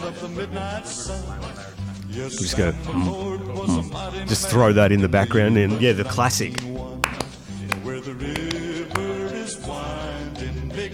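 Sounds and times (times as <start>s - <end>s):
music with low sustained tones: 0.0s - 10.9s
speech: 0.1s - 6.8s
hand claps imitating the clip-clop of horse hooves: 6.4s - 9.4s.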